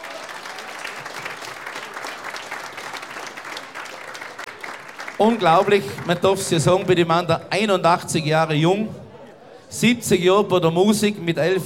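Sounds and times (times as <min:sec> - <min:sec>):
audience applause welcoming a guest: 0:00.0 - 0:06.9
speech: 0:05.2 - 0:09.0, 0:09.7 - 0:11.6.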